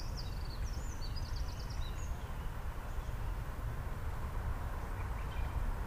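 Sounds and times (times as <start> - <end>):
Eurasian wren trilling song: 0.0 - 3.5, 4.8 - 5.7.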